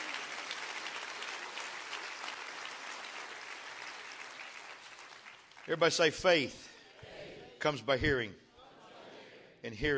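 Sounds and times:
audience clapping hands: 0:00.0 - 0:06.5
speech: 0:05.7 - 0:06.7, 0:07.6 - 0:08.4, 0:09.6 - 0:09.9.

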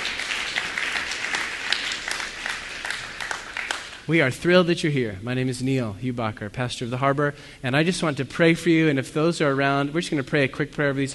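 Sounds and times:
audience applause: 0:00.0 - 0:04.1
speech: 0:04.1 - 0:11.1.

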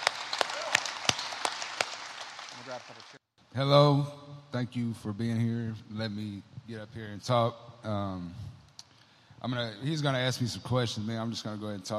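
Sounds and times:
audience applause: 0:00.0 - 0:03.2
speech: 0:02.7 - 0:08.5, 0:09.4 - 0:11.9.

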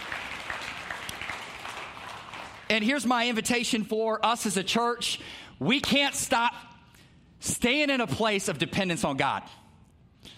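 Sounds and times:
audience applause: 0:00.0 - 0:02.7
speech: 0:02.7 - 0:06.7, 0:07.4 - 0:09.6.

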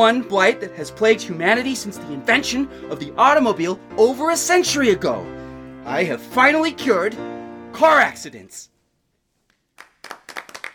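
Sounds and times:
speech: 0:00.0 - 0:08.7
faint audience applause from a small crowd: 0:09.5 - 0:10.7.

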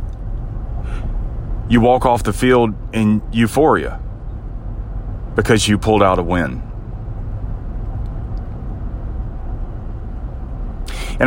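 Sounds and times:
car road rumble from inside a car: 0:00.0 - 0:11.2
speech: 0:01.7 - 0:04.0, 0:05.4 - 0:06.7.

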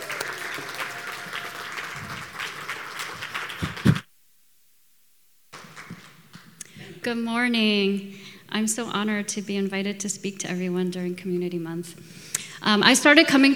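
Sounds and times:
audience applause: 0:00.0 - 0:04.1, 0:05.6 - 0:06.6
speech: 0:07.0 - 0:13.5.

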